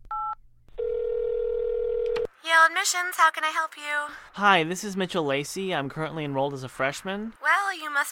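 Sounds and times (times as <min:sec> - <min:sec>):
telephone number being dialed: 0:00.1 - 0:02.3
speech: 0:02.6 - 0:08.1.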